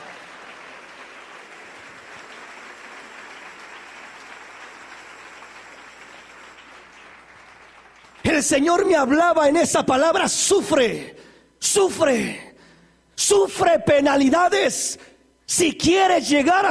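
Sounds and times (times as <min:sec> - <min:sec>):
audience applause: 0:00.0 - 0:08.5
speech: 0:08.4 - 0:12.5, 0:13.2 - 0:16.6.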